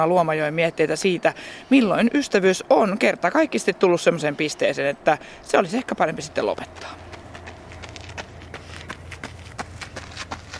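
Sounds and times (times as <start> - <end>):
speech: 0.0 - 7.0
low hum: 0.1 - 10.5
footsteps of people running past outdoors: 6.4 - 10.5.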